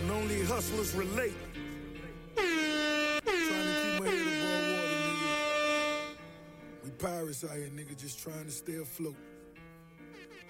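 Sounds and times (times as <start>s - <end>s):
speech: 0.2s - 1.6s, 7.0s - 9.3s
air horn sound effect in a song: 2.4s - 6.8s.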